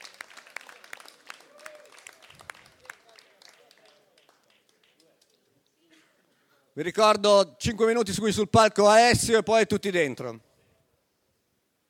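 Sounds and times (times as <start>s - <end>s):
audience applause: 0.0s - 5.2s
speech: 6.8s - 10.5s.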